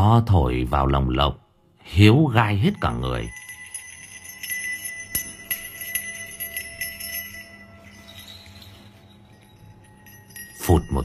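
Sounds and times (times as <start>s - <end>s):
speech: 0.0s - 3.4s, 10.7s - 11.0s
bell ringing: 2.5s - 11.0s.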